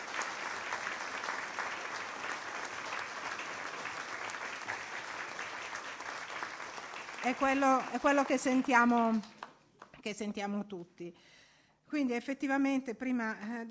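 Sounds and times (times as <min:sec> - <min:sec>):
audience applause: 0:00.0 - 0:09.5
speech: 0:07.2 - 0:09.4, 0:10.0 - 0:13.7.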